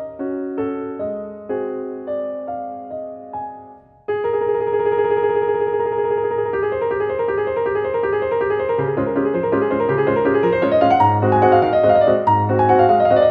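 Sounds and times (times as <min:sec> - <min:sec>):
waltz piano: 0:00.0 - 0:13.2.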